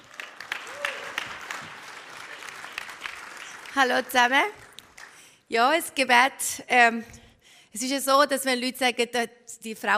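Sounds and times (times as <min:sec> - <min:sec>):
audience applause: 0:00.0 - 0:05.2
speech: 0:03.8 - 0:04.6, 0:05.5 - 0:09.9.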